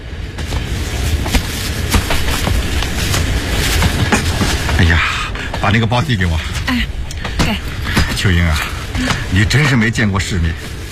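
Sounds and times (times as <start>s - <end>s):
train to Guangzhou rolling along rails: 0.0s - 10.9s
speech: 4.8s - 10.7s.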